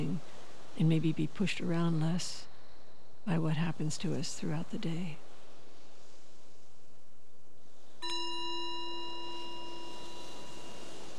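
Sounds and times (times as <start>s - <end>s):
speech: 0.0s - 2.5s, 3.2s - 5.2s
soft hiss: 0.0s - 11.1s
meditation bell ringing: 8.0s - 11.1s.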